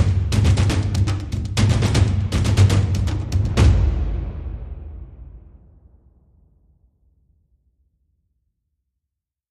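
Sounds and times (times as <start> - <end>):
big epic drums: 0.0 - 5.9.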